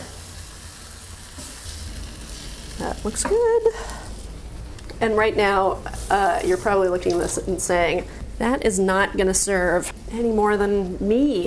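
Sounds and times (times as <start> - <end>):
noodles simmering in liquid in a pan over medium heat: 0.0 - 7.6
speech: 2.8 - 4.1, 5.0 - 11.4.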